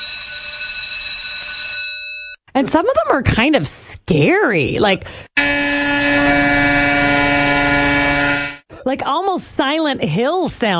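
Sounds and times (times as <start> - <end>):
school recess bell ringing: 0.0 - 2.4, 5.4 - 8.6
speech: 2.6 - 5.6, 8.9 - 10.7.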